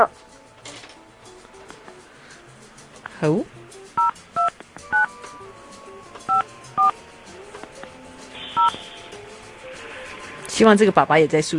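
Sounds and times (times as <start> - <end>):
speech: 3.2 - 3.6, 10.6 - 11.5
telephone keypad tones: 4.0 - 5.1, 6.3 - 6.9, 8.6 - 8.8.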